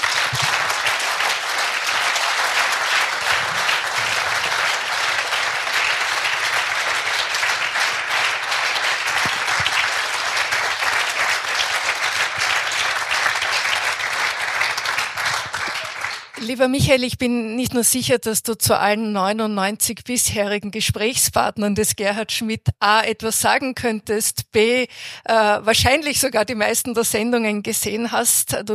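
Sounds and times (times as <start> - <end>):
loud audience applause: 0.0 - 16.5
speech: 16.6 - 28.7.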